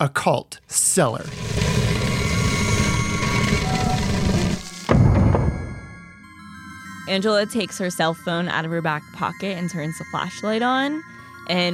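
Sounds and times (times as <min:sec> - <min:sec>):
speech: 0:00.0 - 0:01.8, 0:07.1 - 0:11.7
stone secret fireplace door grinding open: 0:01.1 - 0:04.9.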